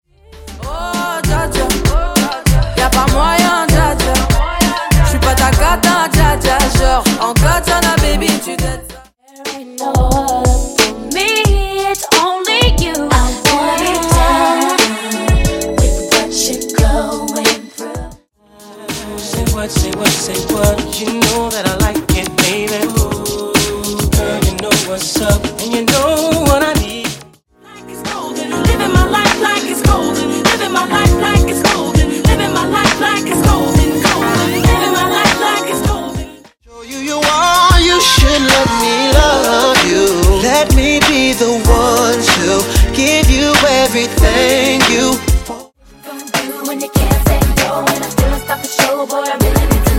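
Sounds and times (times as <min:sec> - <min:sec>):
90s and 2000s old school R&B megamix: 0:00.3 - 0:49.9.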